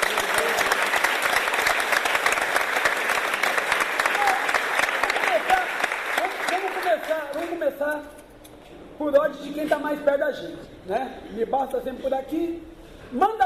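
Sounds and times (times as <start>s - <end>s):
audience applause: 0.0s - 7.6s
speech: 9.0s - 13.4s.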